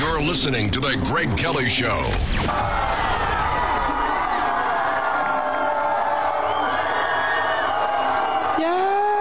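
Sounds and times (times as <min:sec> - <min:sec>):
speech: 0:00.2 - 0:03.0
young crowd yelling and cheering: 0:02.4 - 0:09.1.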